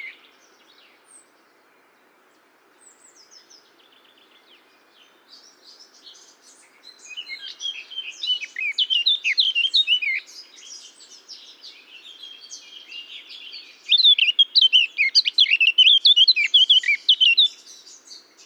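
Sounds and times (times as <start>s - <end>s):
Eurasian blackcap Sylvia atricapilla warbling song: 7.0s - 11.6s, 12.2s - 18.4s.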